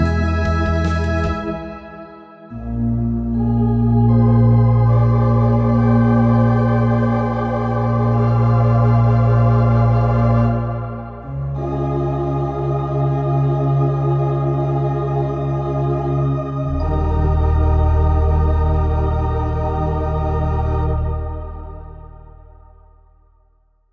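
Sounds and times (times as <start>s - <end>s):
Hammond organ: 0.0s - 22.6s.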